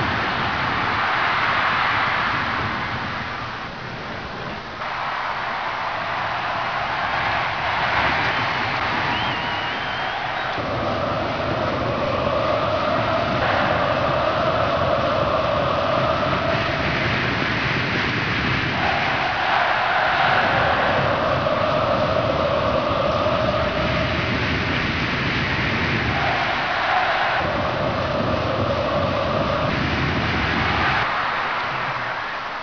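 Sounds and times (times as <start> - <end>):
football crowd: 0.0 - 32.6.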